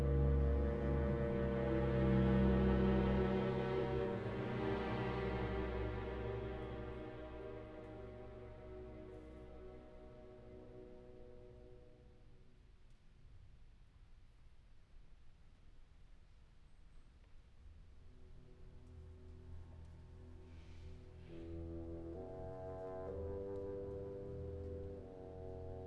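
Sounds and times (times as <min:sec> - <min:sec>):
classical music: 0:00.0 - 0:12.2, 0:18.3 - 0:25.8.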